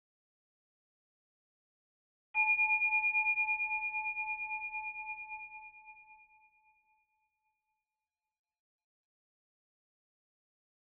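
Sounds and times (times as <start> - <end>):
single meditation bell: 2.4 - 7.7.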